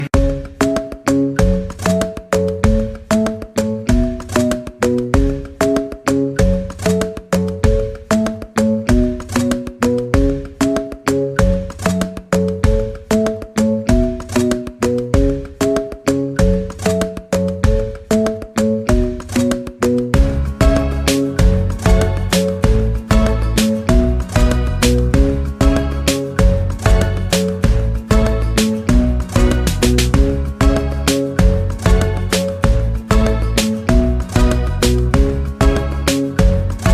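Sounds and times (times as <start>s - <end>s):
instrumental music: 0.0s - 36.9s.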